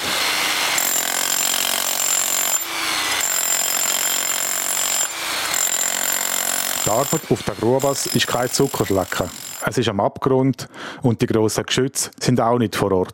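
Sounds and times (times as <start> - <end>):
small powered compactor pounding: 0.2 - 9.6
speech: 6.9 - 13.1.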